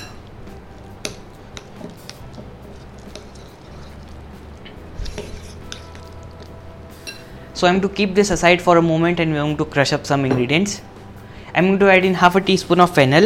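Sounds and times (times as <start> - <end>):
coriander, green chili, kasuri methi and roasted besan being mixed: 0.0 - 7.2
speech: 7.6 - 10.9, 11.6 - 13.2.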